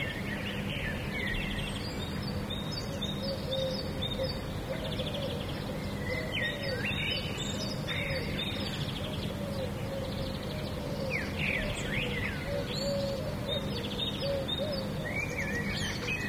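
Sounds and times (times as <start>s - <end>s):
birds: 0.0s - 16.2s.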